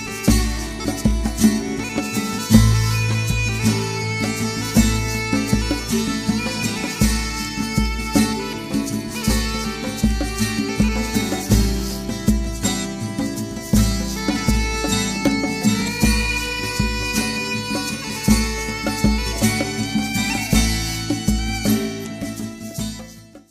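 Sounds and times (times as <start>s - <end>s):
pipe percussion: 0.0s - 23.5s.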